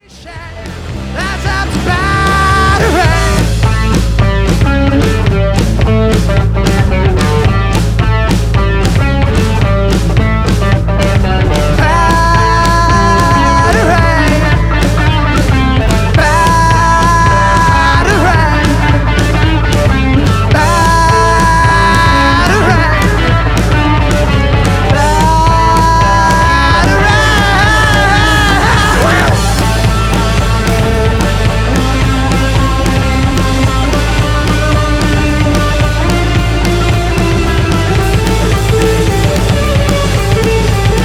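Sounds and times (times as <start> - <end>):
drum kit: 0.0 - 41.0.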